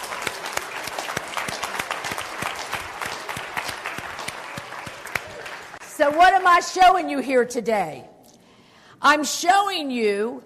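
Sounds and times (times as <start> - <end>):
audience clapping: 0.0 - 6.6
speech: 6.0 - 8.1, 9.0 - 10.4.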